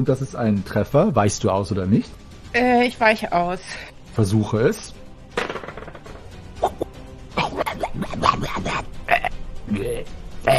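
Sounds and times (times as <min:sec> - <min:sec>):
speech: 0:00.0 - 0:05.0
person burping: 0:07.4 - 0:10.5.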